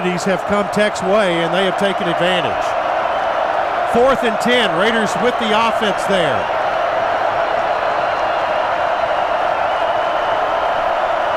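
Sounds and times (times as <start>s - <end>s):
speech: 0.0s - 2.8s, 3.9s - 6.6s
stadium crowd roaring: 0.0s - 11.3s.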